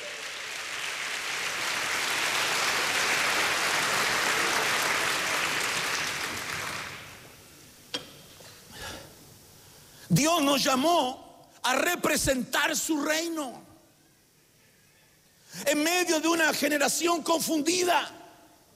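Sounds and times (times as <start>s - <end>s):
audience clapping hands: 0.0s - 7.4s
speech: 10.1s - 13.7s, 15.6s - 18.2s.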